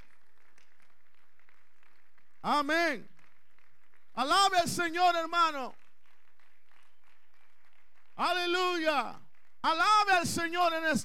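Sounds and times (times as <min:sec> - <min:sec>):
audience applause: 0:00.0 - 0:08.3
speech: 0:02.4 - 0:03.2, 0:04.2 - 0:05.8, 0:08.2 - 0:11.0.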